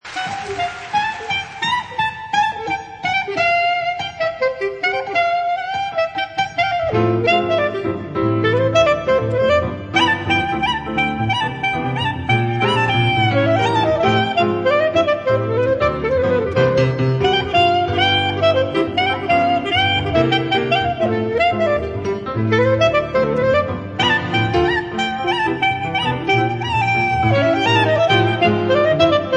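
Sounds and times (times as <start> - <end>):
gafieira jazz music: 0.0 - 29.3.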